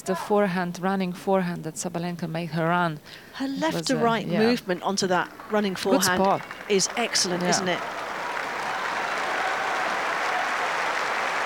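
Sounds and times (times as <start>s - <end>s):
speech: 0.0s - 8.0s
crowd applauding at tennis match: 4.7s - 11.4s.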